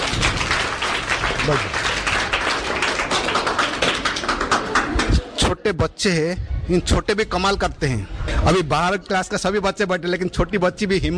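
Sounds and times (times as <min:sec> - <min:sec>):
audience clapping: 0:00.0 - 0:05.5
speech: 0:01.5 - 0:01.8, 0:05.6 - 0:11.1.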